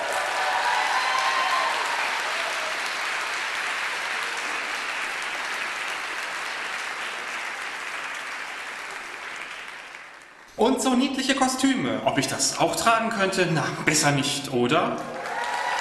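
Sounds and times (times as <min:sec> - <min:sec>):
audience applause: 0:00.0 - 0:10.6, 0:15.0 - 0:15.7
speech: 0:10.6 - 0:15.2.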